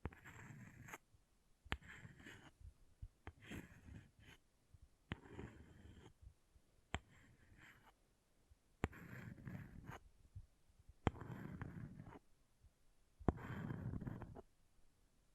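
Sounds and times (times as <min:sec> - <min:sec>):
object scratching: 0:00.0 - 0:01.0, 0:01.7 - 0:02.6, 0:03.3 - 0:04.4, 0:05.1 - 0:06.2, 0:07.0 - 0:08.0, 0:08.8 - 0:10.0, 0:11.0 - 0:12.2, 0:13.2 - 0:14.5.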